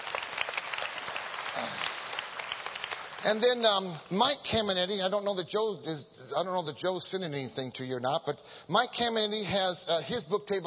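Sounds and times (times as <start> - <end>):
audience applause: 0.0 - 3.8
speech: 3.2 - 10.6.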